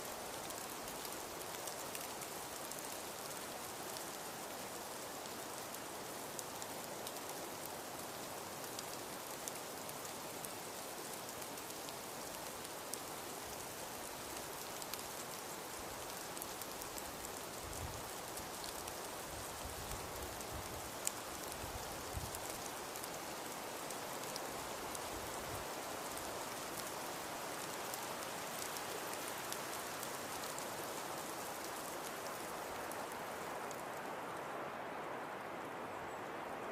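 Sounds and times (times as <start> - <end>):
snowfall: 0.0 - 36.7.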